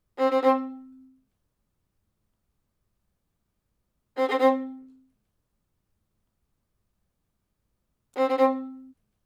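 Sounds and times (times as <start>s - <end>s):
violin: 0.2s - 1.2s, 4.2s - 5.0s, 8.2s - 9.0s.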